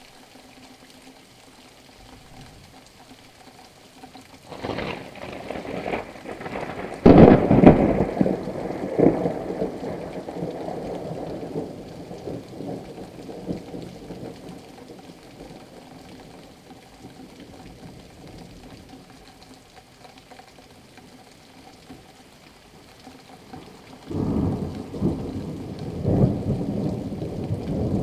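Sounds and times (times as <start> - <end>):
thunderstorm in Kent: 4.5 - 16.4, 23.7 - 28.0.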